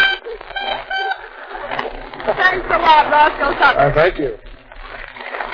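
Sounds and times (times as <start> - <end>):
silvery tone horn: 0.0 - 1.8
speech: 2.4 - 4.4.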